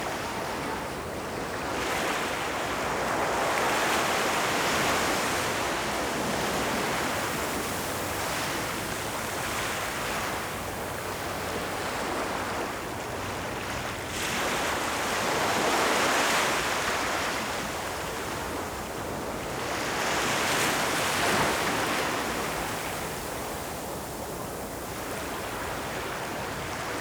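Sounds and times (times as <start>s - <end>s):
ocean waves at high tide under a Malibu boardwalk in California: 0.0s - 26.9s.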